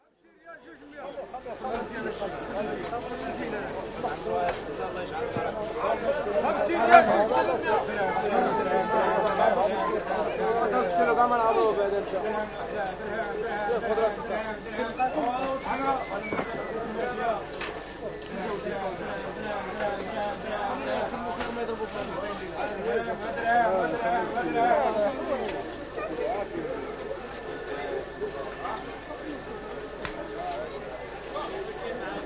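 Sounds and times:
souk market ambience in Rabat, Morocco: 0.0s - 32.2s.

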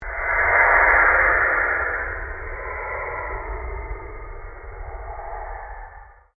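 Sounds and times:
long pulsing sweep: 0.0s - 6.3s.

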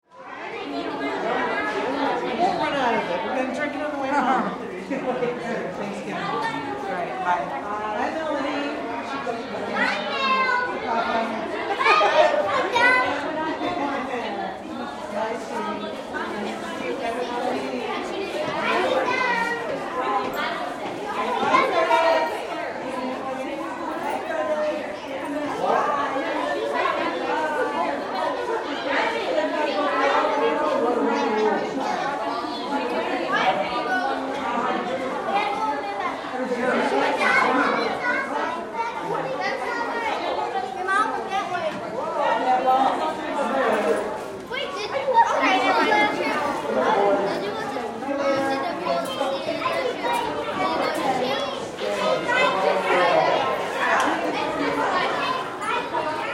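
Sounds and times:
children walla in an elementary school hallway: 0.0s - 56.3s.

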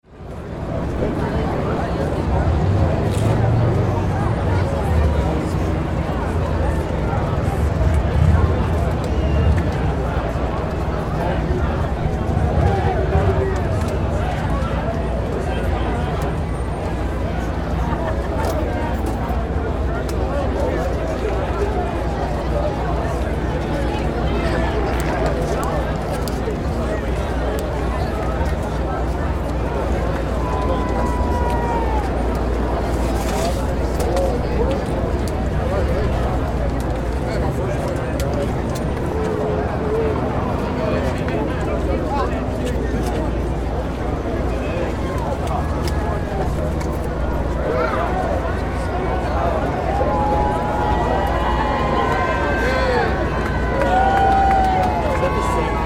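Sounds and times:
parade crowd walla: 0.0s - 55.8s.

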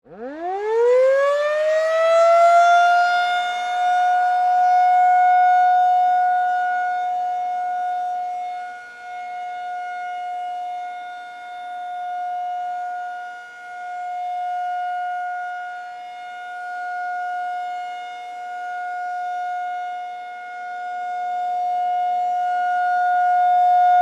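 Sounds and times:
tornado emergency siren: 0.0s - 23.9s.

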